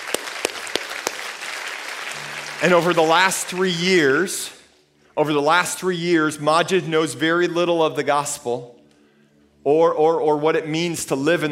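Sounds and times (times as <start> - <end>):
audience clapping: 0.0 - 4.4
speech: 2.6 - 4.6, 5.2 - 8.8, 9.6 - 11.5.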